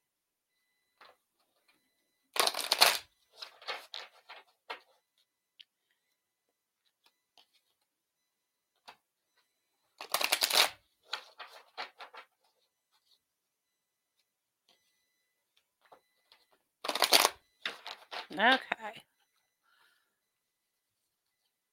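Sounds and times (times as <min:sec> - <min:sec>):
Whispers of Healing oracle card deck shuffling: 0:02.4 - 0:03.0, 0:10.0 - 0:12.2, 0:16.8 - 0:18.2
speech: 0:18.4 - 0:19.1.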